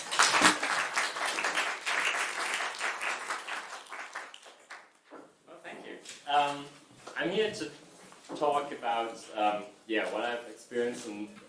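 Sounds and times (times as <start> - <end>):
audience applause: 0.0 - 4.9
speech: 6.3 - 11.4.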